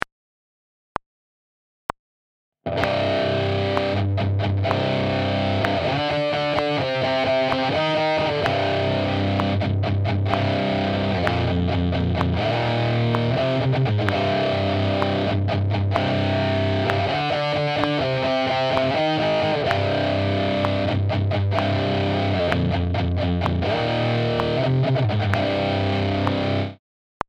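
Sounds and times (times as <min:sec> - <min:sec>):
guitar power chords: 0:02.7 - 0:26.8.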